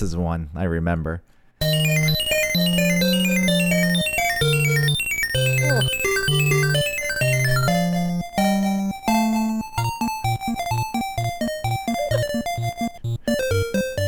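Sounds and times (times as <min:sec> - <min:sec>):
speech: 0:00.0 - 0:01.4
chiptune video game level music: 0:01.6 - 0:14.0.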